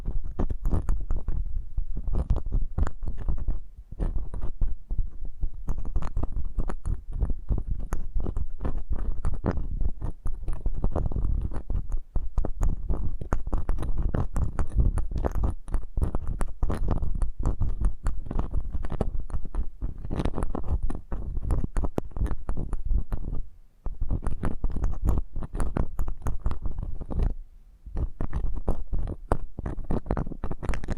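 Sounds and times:
ASMR intimate eardrum massage rubbing and soft thumping: 0:00.0 - 0:30.9.

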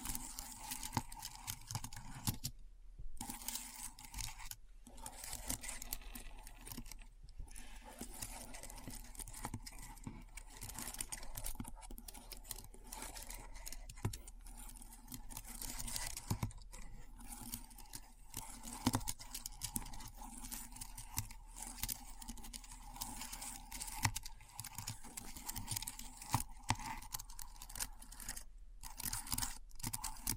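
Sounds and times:
keyboard typing: 0:00.0 - 0:02.5, 0:03.2 - 0:07.0, 0:07.6 - 0:16.5, 0:17.2 - 0:30.3.

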